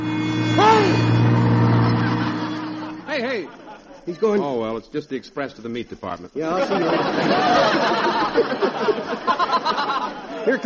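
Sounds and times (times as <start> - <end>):
bus driving past: 0.0 - 3.4
brief whining tone: 0.0 - 4.0
laughter: 1.4 - 4.8, 6.4 - 10.6
speech: 4.1 - 10.6.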